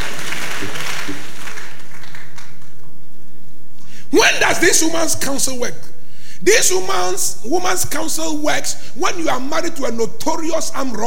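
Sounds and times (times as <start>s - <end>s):
crowd clapping hands: 0.0s - 2.9s
speech: 4.2s - 11.0s.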